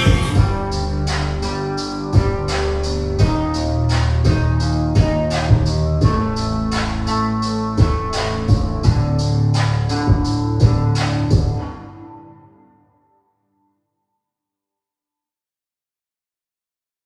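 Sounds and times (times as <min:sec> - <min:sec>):
acoustic cover remix: 0:00.0 - 0:13.2.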